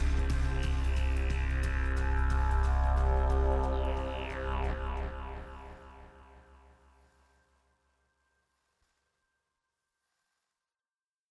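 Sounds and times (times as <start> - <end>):
didgeridoo playing: 0.0 - 6.7.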